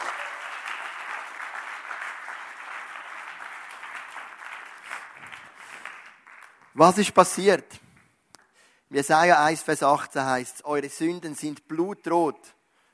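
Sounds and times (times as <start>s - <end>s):
audience applause: 0.0s - 6.8s
speech: 6.8s - 7.8s, 8.9s - 12.6s.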